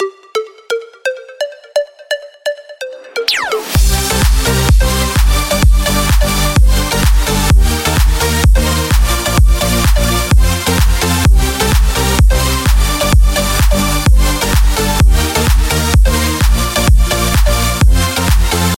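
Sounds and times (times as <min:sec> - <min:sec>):
happy music drop: 0:00.0 - 0:18.7.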